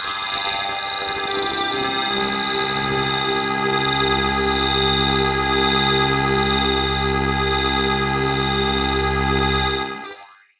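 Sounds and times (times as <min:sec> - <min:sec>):
random science fiction noise tones: 0:00.2 - 0:10.3.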